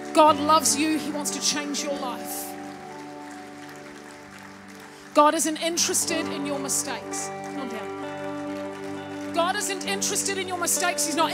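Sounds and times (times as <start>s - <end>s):
audience clapping: 0.0s - 11.3s
sustained keyboard chord: 0.0s - 11.3s
speech: 0.2s - 2.5s, 5.2s - 8.0s, 9.4s - 11.3s.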